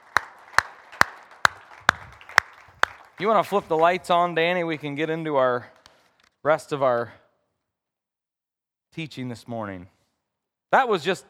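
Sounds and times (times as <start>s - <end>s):
hand claps: 0.0s - 4.0s
speech: 3.2s - 5.8s, 6.4s - 7.2s, 9.0s - 10.0s, 10.7s - 11.2s.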